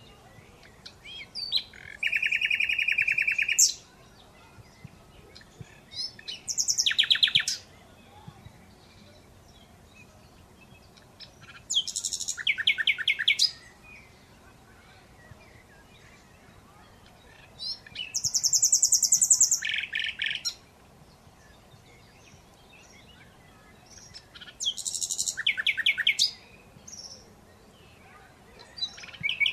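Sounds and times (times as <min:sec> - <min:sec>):
Common Nightingale trilling: 0:00.0 - 0:03.9, 0:05.3 - 0:08.2, 0:10.9 - 0:13.7, 0:17.0 - 0:20.6, 0:23.9 - 0:27.3, 0:28.6 - 0:29.5.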